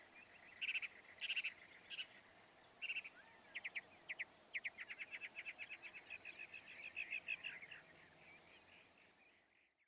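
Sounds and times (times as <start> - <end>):
Northern mockingbird singing: 0.0 - 9.8.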